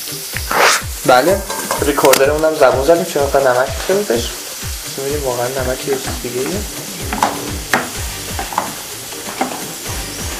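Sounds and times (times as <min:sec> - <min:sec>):
food frying in hot oil in a pan during home cooking: 0:00.0 - 0:10.3
speech: 0:01.0 - 0:04.4, 0:05.0 - 0:06.8
utensil stirring food in a pan: 0:01.4 - 0:02.2, 0:05.8 - 0:09.8.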